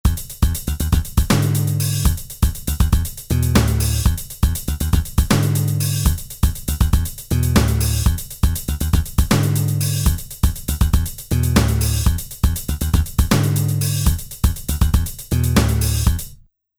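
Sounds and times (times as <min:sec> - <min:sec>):
funk music: 0:00.1 - 0:16.3.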